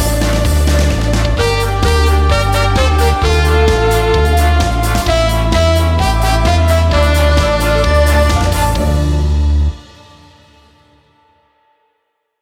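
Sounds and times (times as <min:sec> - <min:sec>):
karaoke singing: 0:00.0 - 0:09.6.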